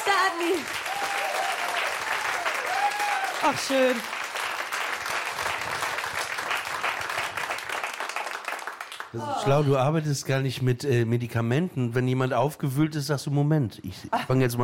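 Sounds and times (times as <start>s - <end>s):
audience applause: 0.0s - 9.7s
speech: 0.1s - 1.2s, 3.4s - 4.2s, 9.1s - 14.6s
spoken exclamation: 9.2s - 9.8s.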